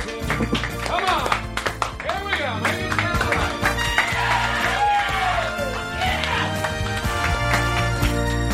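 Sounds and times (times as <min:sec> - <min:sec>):
audience applause: 0:00.0 - 0:08.4
crowd whooping and cheering: 0:03.8 - 0:06.9.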